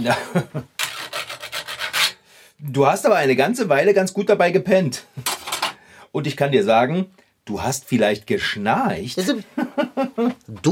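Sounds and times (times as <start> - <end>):
speech: 0.0 - 0.7, 2.6 - 5.3, 6.1 - 10.6
tools rasping and scraping at work: 0.8 - 2.2
laughter: 9.2 - 10.4.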